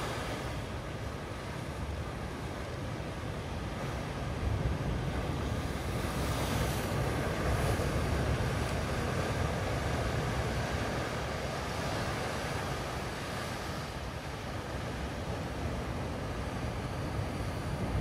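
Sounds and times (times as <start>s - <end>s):
ocean: 0.0s - 18.0s.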